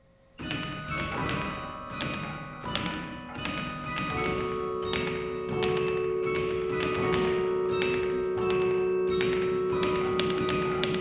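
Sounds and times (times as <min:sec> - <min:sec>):
practice carillon at Beaumont Tower, Michigan State University campus: 0:00.4 - 0:11.0.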